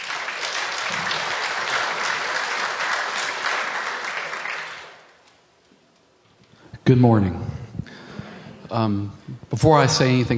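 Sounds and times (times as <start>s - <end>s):
audience applause welcoming a speaker: 0.0s - 5.2s
speech: 6.9s - 7.6s, 8.7s - 10.3s.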